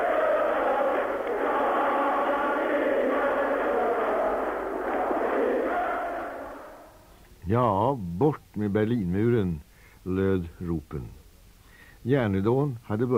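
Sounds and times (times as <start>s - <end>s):
protest crowd whistling and booing: 0.0s - 7.0s
speech: 7.5s - 11.2s, 12.0s - 13.1s.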